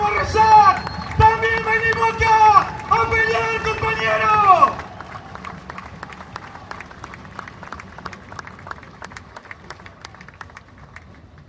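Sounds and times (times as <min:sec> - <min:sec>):
crowd applause: 0:00.0 - 0:11.4.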